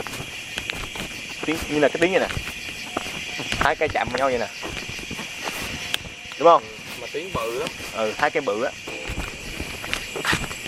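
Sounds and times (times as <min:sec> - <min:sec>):
human footsteps walking: 0:00.0 - 0:10.6
speech: 0:01.5 - 0:02.6, 0:03.4 - 0:04.8, 0:06.4 - 0:08.8.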